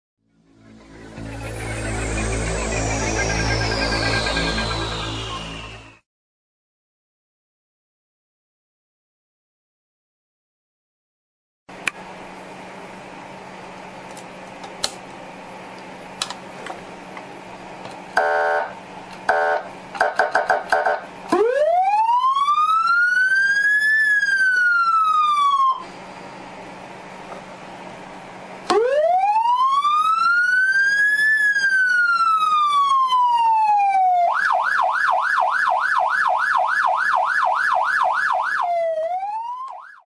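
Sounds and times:
code 3 emergency siren: 0.6s - 6.0s, 18.2s - 26.2s, 28.7s - 40.0s.

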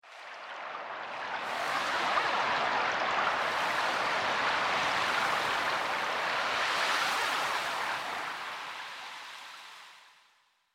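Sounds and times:
seashore: 0.1s - 10.1s.

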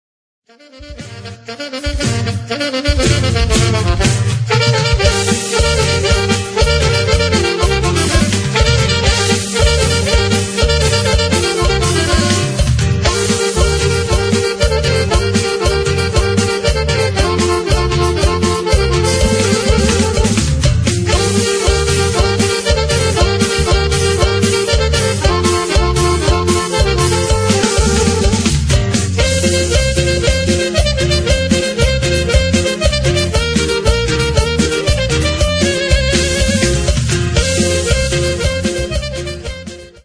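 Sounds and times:
cumbia norteña music: 0.5s - 40.0s.

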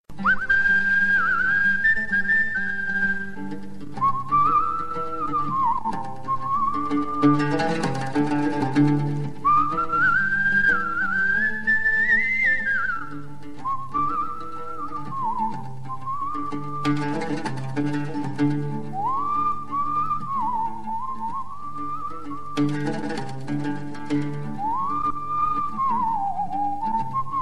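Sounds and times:
Sudanese music: 0.1s - 27.3s.

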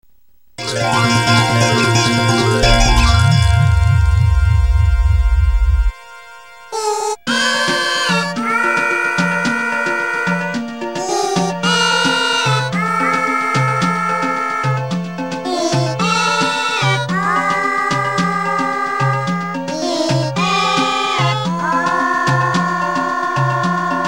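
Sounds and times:
happy song: 0.6s - 24.0s.

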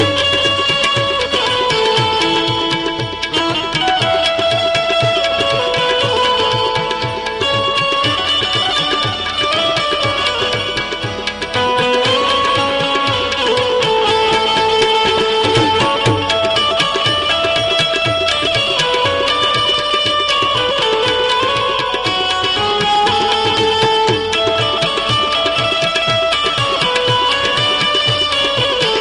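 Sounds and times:
music: 0.0s - 29.0s.

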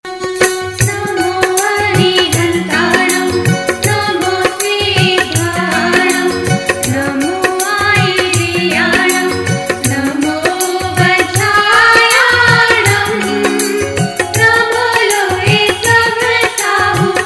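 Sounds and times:
Jain devotional song: 0.1s - 17.2s.

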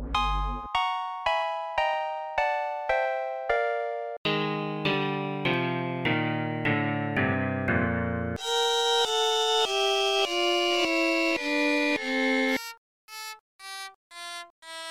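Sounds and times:
F major scale played: 0.1s - 12.7s.

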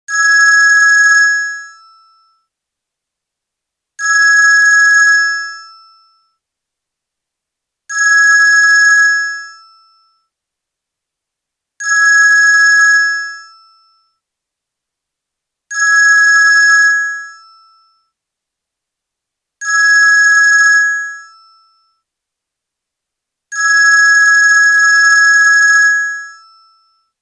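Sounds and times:
old ringtone: 0.1s - 2.5s, 4.0s - 6.4s, 7.9s - 10.3s, 11.8s - 14.2s, 15.7s - 18.2s, 19.6s - 22.1s, 23.5s - 27.1s.

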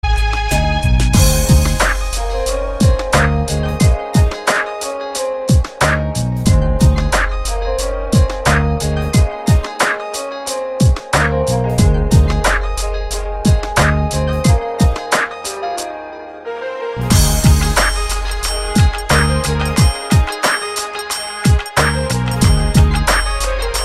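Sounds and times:
hip hop music: 0.0s - 23.8s.

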